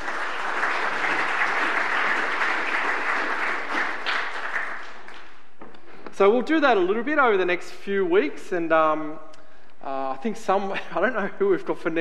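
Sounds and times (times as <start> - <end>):
audience applause: 0.0 - 5.4
speech: 6.2 - 11.9.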